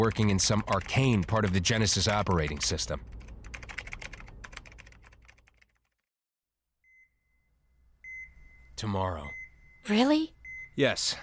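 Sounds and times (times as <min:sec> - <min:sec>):
speech: 0:00.0 - 0:03.2, 0:08.8 - 0:11.2
furious rapid typing on a computer keyboard: 0:00.0 - 0:06.1.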